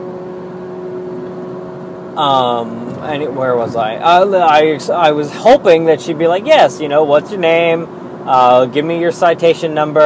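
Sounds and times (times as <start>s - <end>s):
loud motorcycle passing alongside: 2.2s - 4.9s
speech: 2.2s - 10.0s.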